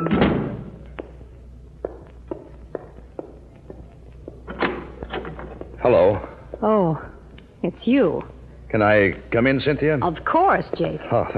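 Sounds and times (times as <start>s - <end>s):
door shutting with a loud thud: 0.0s - 0.8s, 4.4s - 5.6s
footstep-like taps: 0.8s - 5.8s
speech: 5.8s - 11.3s.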